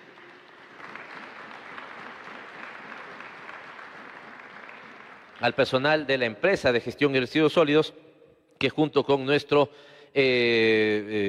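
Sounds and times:
crowd clapping: 0.0s - 6.1s
speech: 5.4s - 8.0s, 8.6s - 11.2s.

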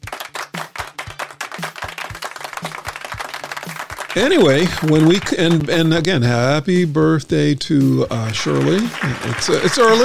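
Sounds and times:
round of applause: 0.0s - 6.0s, 8.1s - 10.0s
speech: 4.2s - 10.0s.

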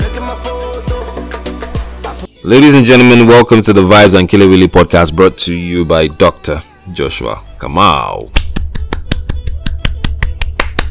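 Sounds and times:
speech: 2.5s - 8.4s
man clapping his hands for himself: 8.3s - 10.8s.

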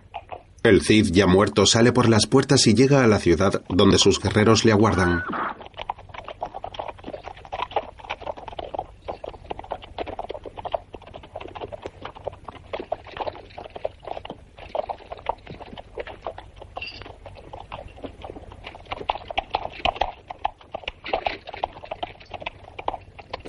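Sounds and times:
horse walking solemnly: 0.0s - 23.4s
speech: 0.6s - 5.4s.

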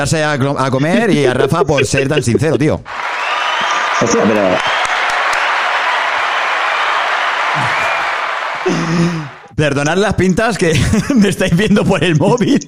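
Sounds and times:
speech: 0.0s - 3.2s, 4.0s - 4.8s, 8.6s - 12.6s
laughter: 0.6s - 4.6s, 7.4s - 9.5s
audience applause: 2.9s - 9.5s.

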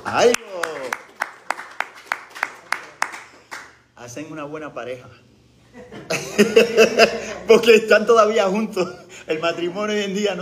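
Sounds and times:
audience applause: 0.0s - 3.8s
speech: 0.1s - 0.4s, 4.1s - 10.4s
laughter: 5.7s - 8.0s.

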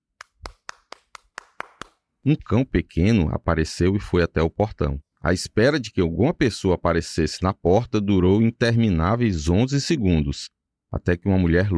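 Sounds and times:
hands clapping at a gate: 0.1s - 2.1s
speech: 2.2s - 11.7s.

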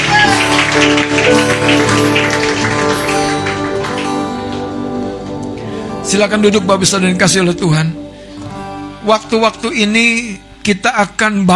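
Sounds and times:
audience applause: 0.0s - 5.5s
sustained musical tones: 0.0s - 10.8s
speech: 6.1s - 8.1s, 9.0s - 11.5s.

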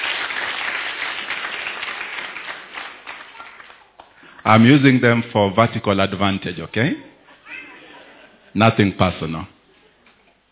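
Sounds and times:
crowd clapping: 0.0s - 4.2s
speech: 4.4s - 7.1s, 8.5s - 9.6s.

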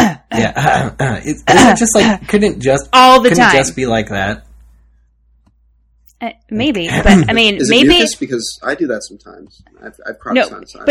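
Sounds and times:
man imitating throat clearing: 0.0s - 2.0s
speech: 0.4s - 4.5s, 6.2s - 10.8s.

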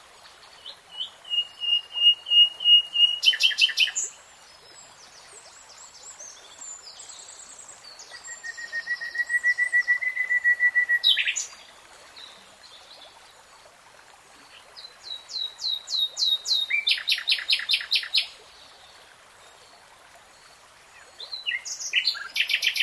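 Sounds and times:
nightingale singing: 0.6s - 4.1s, 8.0s - 11.5s, 15.3s - 18.3s, 21.2s - 22.8s.

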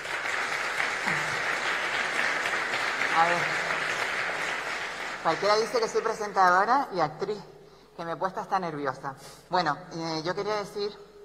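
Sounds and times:
audience applause: 0.0s - 6.2s
speech: 3.2s - 3.6s, 5.2s - 11.1s.

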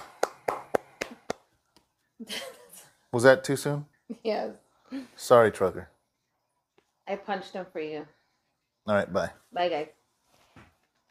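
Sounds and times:
people clapping hands: 0.0s - 1.5s
speech: 2.2s - 5.9s, 7.1s - 8.2s, 8.8s - 10.0s.

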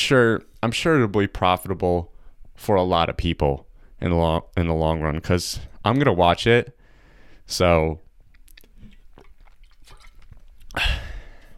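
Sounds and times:
speech: 0.0s - 6.8s, 7.5s - 8.0s, 10.8s - 11.0s
drinking water into a microphone: 8.3s - 11.5s.

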